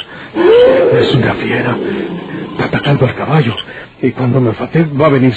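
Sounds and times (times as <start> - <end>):
wild beast roaring: 0.4 - 2.9
speech: 3.0 - 5.3.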